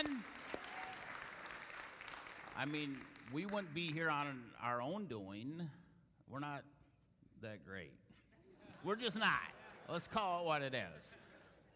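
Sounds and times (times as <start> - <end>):
audience applause: 0.0 - 4.0
speech: 2.6 - 6.7, 7.4 - 8.1, 8.8 - 11.3.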